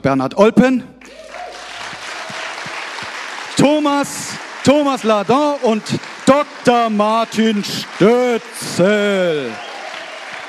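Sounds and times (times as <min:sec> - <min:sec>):
speech: 0:00.0 - 0:01.3, 0:03.6 - 0:09.6
standing audience applauding guests welcomed onto a stage: 0:01.0 - 0:10.4.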